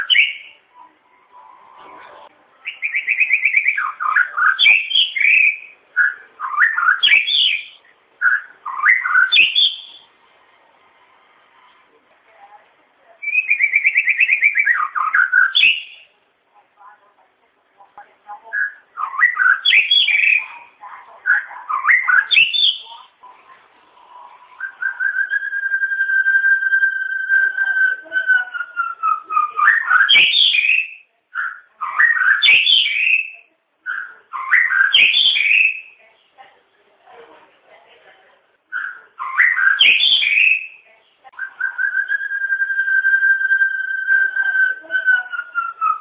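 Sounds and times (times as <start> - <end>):
White-rumped shama song: 0.0 - 0.9, 2.6 - 10.1, 13.2 - 16.1, 18.4 - 23.1, 24.3 - 36.0, 38.7 - 40.8, 41.4 - 46.0.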